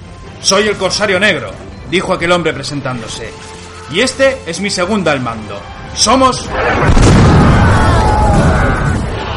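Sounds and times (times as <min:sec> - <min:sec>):
speech: 0:00.4 - 0:07.4
heavy cannon shot: 0:06.6 - 0:09.2.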